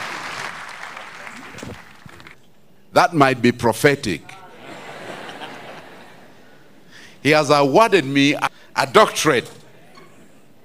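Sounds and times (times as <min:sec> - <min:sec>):
church congregation applauding to welcome a bishop: 0:00.0 - 0:02.4
speech: 0:03.0 - 0:04.3, 0:07.2 - 0:09.6
laughter: 0:04.5 - 0:06.5.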